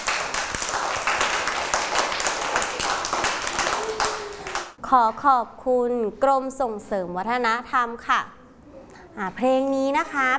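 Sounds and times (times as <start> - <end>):
crowd applause: 0.0 - 4.8
speech: 4.9 - 8.4, 9.2 - 10.3.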